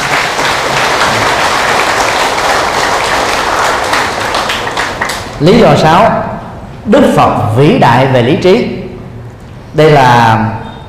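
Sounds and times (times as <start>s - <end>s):
crowd applause: 0.0s - 5.4s
speech: 5.4s - 8.8s, 9.8s - 10.8s.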